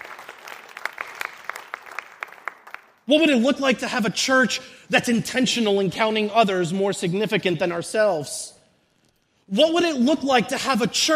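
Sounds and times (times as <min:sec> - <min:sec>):
thin scattered applause from a church congregation: 0:00.0 - 0:03.0
speech: 0:03.1 - 0:08.6, 0:09.5 - 0:11.1.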